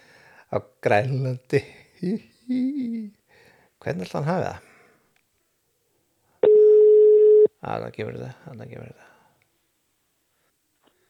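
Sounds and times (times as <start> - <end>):
speech: 0.5 - 3.2, 3.8 - 4.7, 7.6 - 9.1
telephone ringing tone while calling: 6.4 - 7.5.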